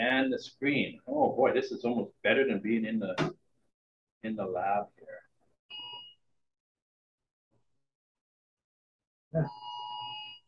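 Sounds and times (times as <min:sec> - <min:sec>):
speech: 0:00.2 - 0:03.4, 0:04.2 - 0:05.2, 0:09.3 - 0:09.7
phone emergency Amber alert tone: 0:09.4 - 0:10.4.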